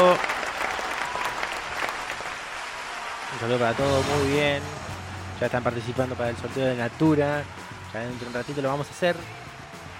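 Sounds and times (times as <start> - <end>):
audience applause during a live event with music and a prize draw: 0.0 - 4.2
speech: 3.4 - 9.5.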